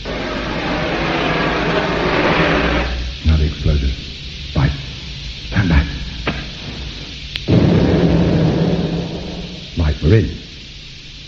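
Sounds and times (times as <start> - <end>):
blowtorch: 0.0 - 3.2, 5.2 - 9.8
speech: 10.1 - 10.4.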